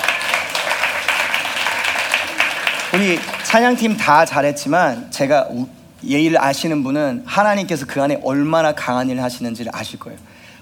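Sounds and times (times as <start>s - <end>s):
church congregation clapping for the praise team: 0.0s - 4.2s
speech: 2.9s - 10.3s.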